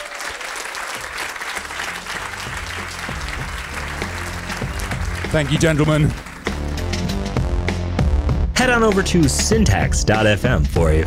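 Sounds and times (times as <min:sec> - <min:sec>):
audience applause: 0:00.0 - 0:07.3
speech: 0:05.3 - 0:06.3, 0:08.6 - 0:11.0.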